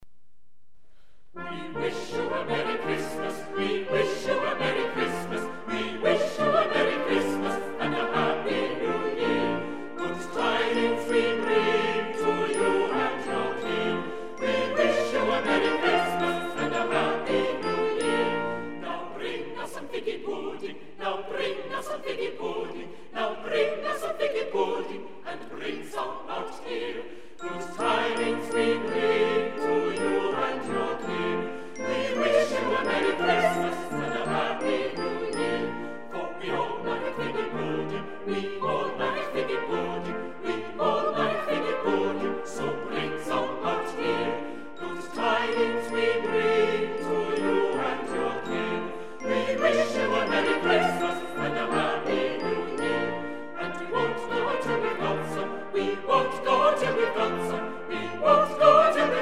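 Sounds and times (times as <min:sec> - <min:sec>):
chamber choir singing a Christmas carol: 0:01.4 - 0:59.1.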